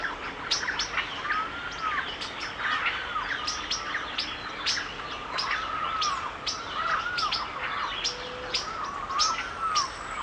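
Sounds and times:
birds giving harsh buzzy squawks in a forest: 0.0 - 10.2.

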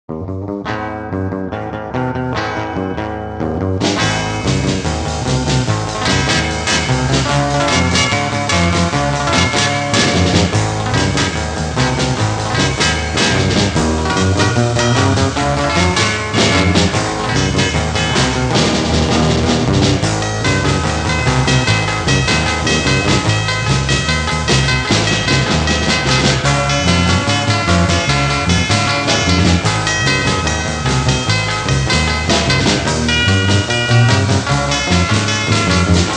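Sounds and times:
instrumental music: 0.1 - 36.1.

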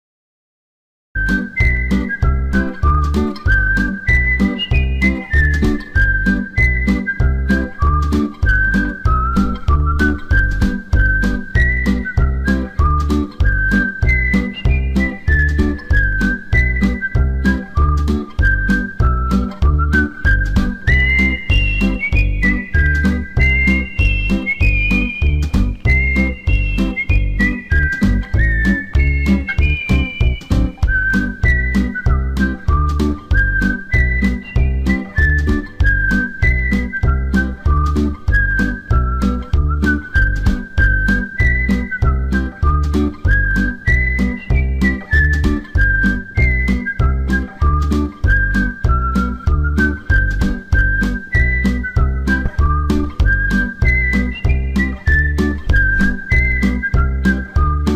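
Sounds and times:
whistled tune: 1.2 - 57.9.

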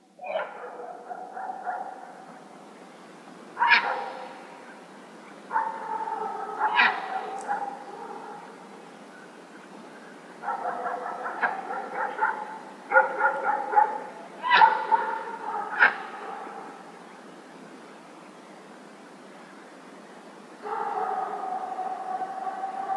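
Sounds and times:
dog barking at a lake near a village in the evening: 0.2 - 2.2, 3.6 - 4.3, 5.5 - 8.6, 10.4 - 16.8, 20.6 - 22.9.

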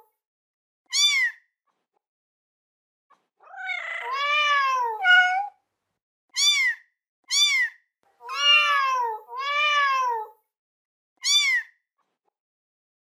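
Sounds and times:
kitten meowing: 0.9 - 1.3, 3.5 - 5.5, 6.4 - 10.3, 11.2 - 11.7.

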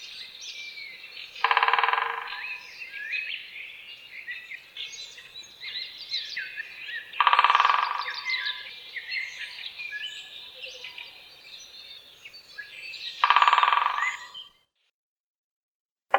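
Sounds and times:
great spotted woodpecker drumming: 1.4 - 2.6, 7.2 - 8.4, 13.2 - 14.3.

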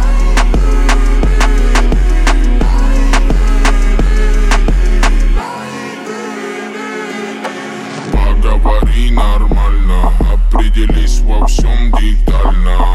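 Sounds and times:
37 39 41 Hz low bass tones remix: 0.0 - 5.4, 8.2 - 12.9.

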